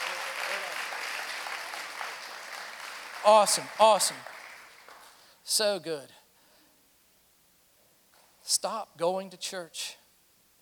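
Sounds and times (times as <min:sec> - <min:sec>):
audience clapping: 0:00.0 - 0:05.3
speech: 0:03.2 - 0:04.3, 0:05.5 - 0:06.2, 0:08.5 - 0:10.0.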